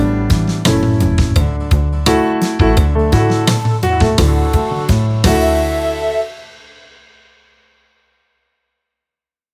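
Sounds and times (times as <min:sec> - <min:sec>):
jazzy advert music: 0:00.0 - 0:06.8.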